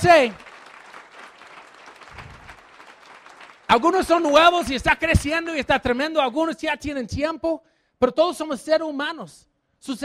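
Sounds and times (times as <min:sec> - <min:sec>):
speech: 0:00.0 - 0:00.5, 0:03.7 - 0:10.0
audience applauding at a Spanish-language gathering: 0:00.0 - 0:05.5.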